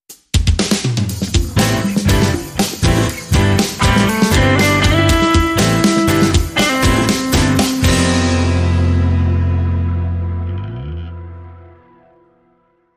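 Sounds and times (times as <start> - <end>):
piano music: 1.2 - 12.7.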